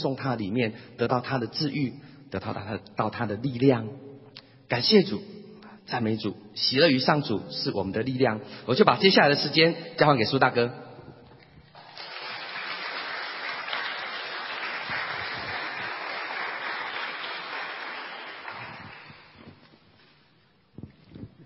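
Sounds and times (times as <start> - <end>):
speech: 0.0 - 4.1, 4.7 - 10.8
audience applause: 11.7 - 19.4.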